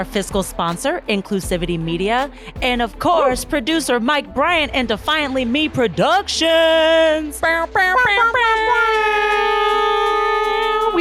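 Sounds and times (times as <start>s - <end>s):
speech: 0.0s - 9.5s
air horn blaring: 8.0s - 11.0s.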